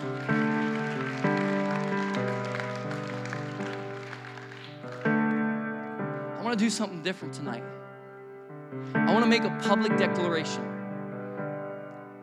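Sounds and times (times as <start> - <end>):
crowd clapping: 0.0 - 5.6
sustained keyboard chords: 0.0 - 12.2
speech: 6.5 - 7.8, 9.0 - 10.7.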